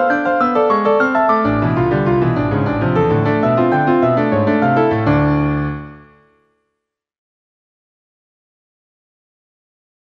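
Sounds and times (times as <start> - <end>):
piano piece: 0.0 - 6.6.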